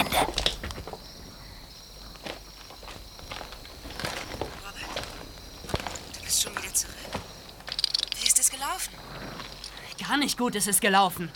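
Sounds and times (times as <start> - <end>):
hiss: 0.0 - 11.3
footsteps of a person walking: 1.9 - 9.9
speech: 10.1 - 11.3.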